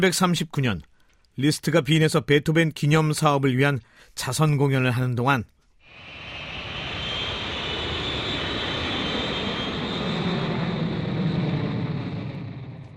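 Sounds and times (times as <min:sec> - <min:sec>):
speech: 0:00.0 - 0:05.6
airplane engine droning: 0:05.9 - 0:12.9.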